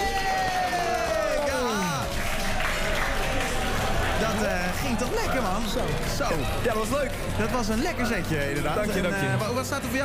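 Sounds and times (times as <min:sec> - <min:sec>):
audience applause: 0:00.0 - 0:09.3
speech: 0:04.9 - 0:10.0.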